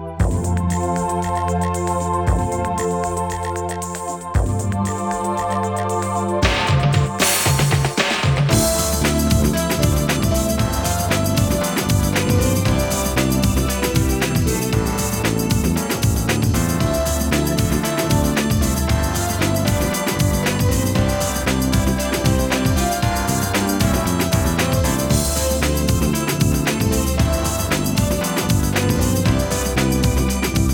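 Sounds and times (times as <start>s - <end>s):
dance music: 0.2s - 30.7s.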